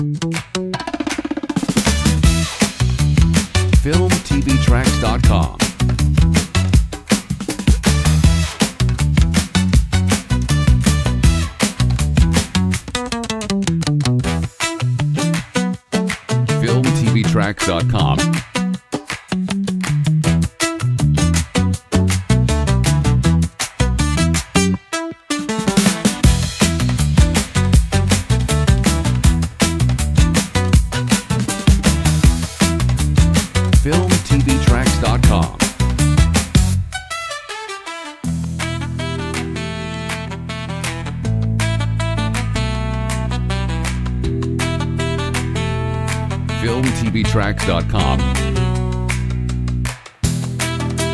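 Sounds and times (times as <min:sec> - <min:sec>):
bossa hip hop: 0:00.2 - 0:13.1, 0:13.7 - 0:24.8, 0:25.3 - 0:51.0.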